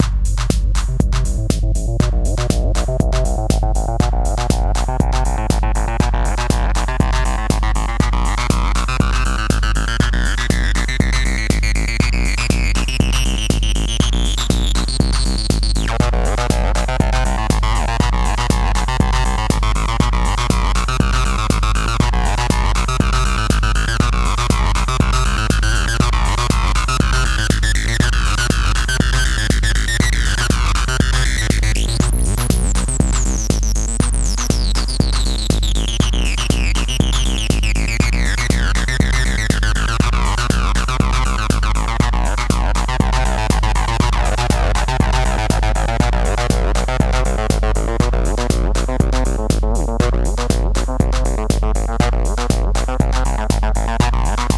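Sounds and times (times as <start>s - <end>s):
distorted acid synth: 0.0s - 54.5s.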